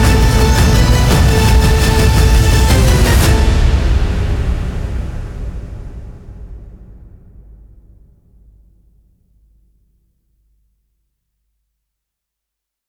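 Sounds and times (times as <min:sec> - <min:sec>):
tense violin composition: 0:00.0 - 0:05.7.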